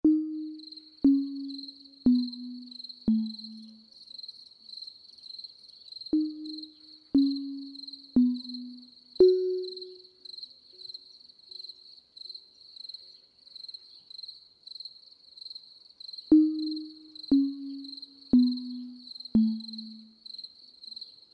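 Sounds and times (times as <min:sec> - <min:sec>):
sleep music: 0:00.0 - 0:03.9, 0:06.2 - 0:10.2, 0:16.3 - 0:20.2.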